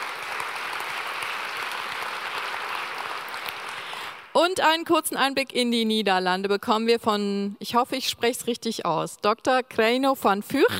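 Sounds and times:
audience applause: 0.0 - 4.3
speech: 4.4 - 10.7.

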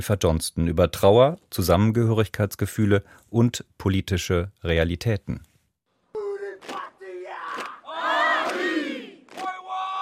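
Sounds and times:
speech: 0.0 - 5.5
soldiers chanting haka: 6.2 - 10.0.

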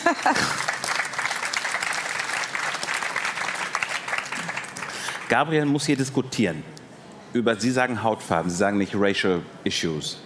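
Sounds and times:
audience applause: 0.0 - 5.5
speech: 0.1 - 0.7, 5.3 - 10.2.

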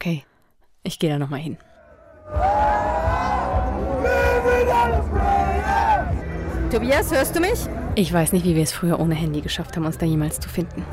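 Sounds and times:
speech: 0.0 - 1.7, 2.3 - 2.9, 6.7 - 10.9
festival crowd roaring at a Franconian fair: 1.8 - 7.9.

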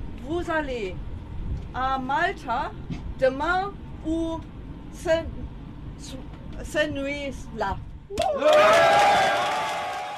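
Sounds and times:
speech: 0.3 - 1.1, 1.7 - 5.4, 6.0 - 9.5
people cheering aboard the rescue ship Alan Kurdi: 8.1 - 10.1.

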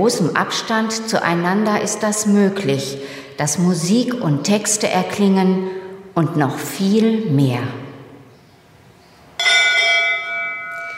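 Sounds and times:
speech: 0.0 - 7.8
fire brigade bell ringing: 9.4 - 10.9.

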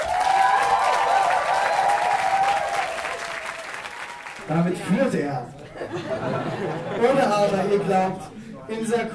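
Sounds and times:
faint cheering: 0.0 - 4.4
crowd applause: 0.0 - 4.5
speech: 4.5 - 9.1
laughter: 5.6 - 8.2.

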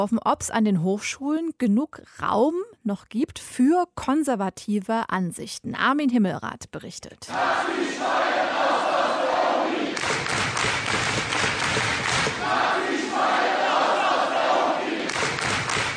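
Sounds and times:
speech: 0.0 - 8.9
hundreds of students chanting in lecture hall: 7.3 - 10.1, 12.0 - 15.4
crowd noise: 7.3 - 15.9
bursts of clapping: 9.9 - 12.6, 14.8 - 15.9.

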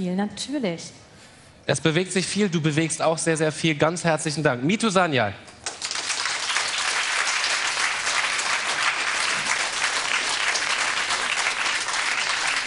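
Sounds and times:
speech: 0.0 - 5.6
audience applause: 5.6 - 12.6.

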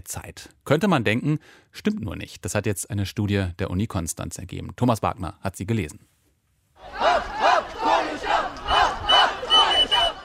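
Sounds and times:
speech: 0.0 - 6.1
crowd of schoolchildren shouting in protest: 6.8 - 10.2.

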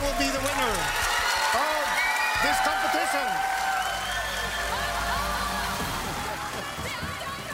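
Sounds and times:
crowd cheering: 0.0 - 7.5.

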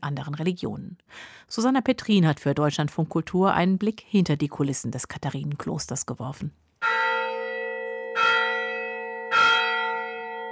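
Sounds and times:
speech: 0.0 - 6.6
church bell striking noon: 6.8 - 10.4.

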